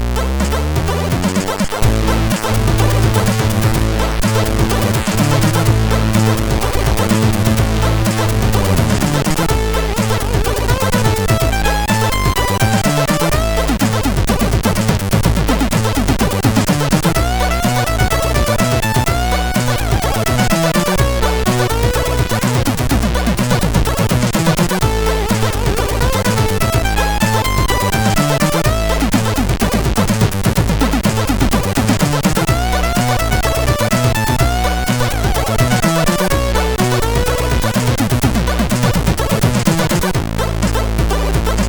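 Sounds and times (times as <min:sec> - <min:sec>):
MOS6581R3 chip tune: 0:00.1 - 0:41.6.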